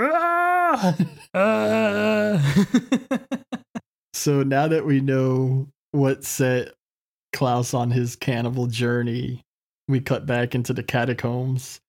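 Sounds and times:
dubbed movie scream with anguished wails and sobbing cries: 0.0s - 2.6s
speech: 0.8s - 3.4s, 4.2s - 11.8s
laughter: 2.3s - 3.8s.

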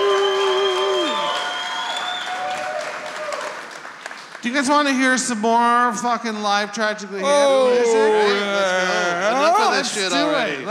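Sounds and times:
held whistle-like tone bending downward: 0.0s - 2.3s
audience clapping and cheering: 0.0s - 5.1s
speech: 4.4s - 10.7s.

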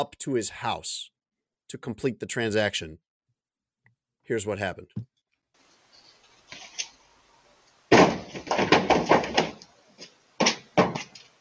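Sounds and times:
speech: 0.0s - 1.1s, 1.7s - 3.0s, 4.3s - 5.1s
deer crashing into side of pickup truck: 7.9s - 9.6s.

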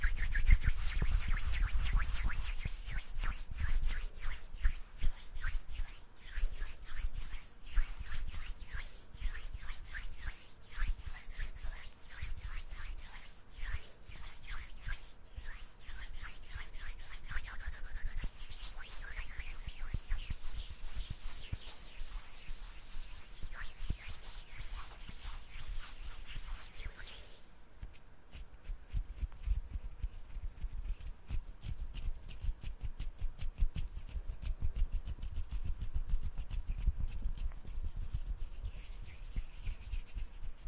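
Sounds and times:
hands rubbing and brushing: 0.0s - 40.6s.

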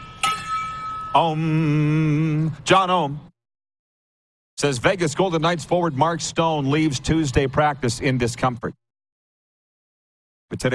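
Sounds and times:
gong being struck: 0.0s - 1.3s
speech: 1.2s - 3.3s, 4.6s - 8.8s, 10.5s - 10.7s.

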